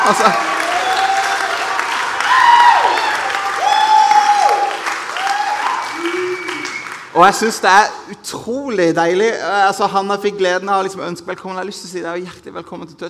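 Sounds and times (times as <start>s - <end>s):
audience clapping: 0.0s - 7.6s
speech: 0.1s - 0.6s, 7.2s - 13.0s.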